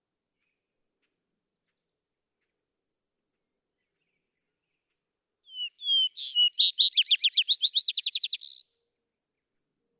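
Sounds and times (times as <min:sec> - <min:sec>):
vesper sparrow song: 0:05.5 - 0:08.6.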